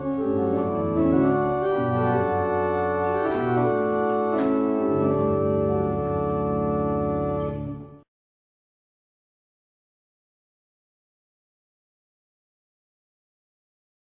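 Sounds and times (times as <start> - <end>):
barrel organs: 0.0 - 8.0.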